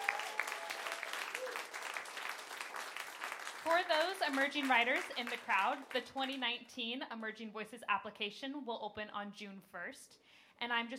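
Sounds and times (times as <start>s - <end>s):
whoops and cheers: 0.0s - 1.9s
audience applause: 0.0s - 5.9s
speech: 3.7s - 10.9s.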